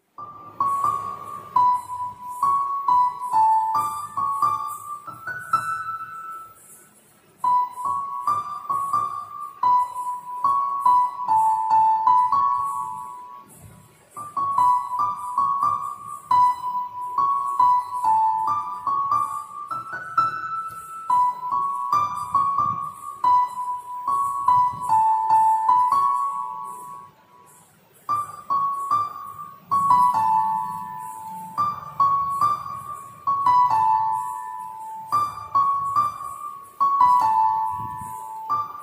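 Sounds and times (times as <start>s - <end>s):
song on piano: 0.0s - 38.8s.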